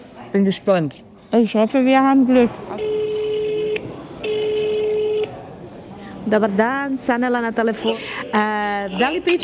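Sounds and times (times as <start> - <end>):
speech: 0.3 - 2.9, 6.3 - 9.4
telephone ringing tones on a call to a hospital: 2.8 - 5.4.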